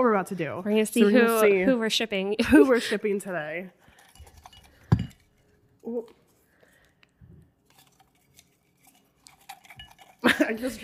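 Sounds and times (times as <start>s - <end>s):
speech: 0.0s - 3.8s, 5.8s - 6.2s, 10.3s - 10.8s
paper name slips shaken in a cup: 7.6s - 10.8s.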